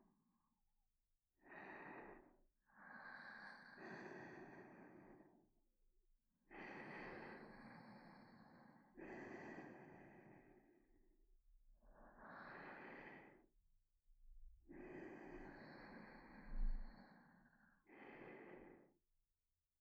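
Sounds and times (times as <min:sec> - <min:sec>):
sleeping breathing in both ears: 0:02.8 - 0:05.4, 0:06.5 - 0:10.8, 0:11.9 - 0:13.4, 0:14.7 - 0:18.9.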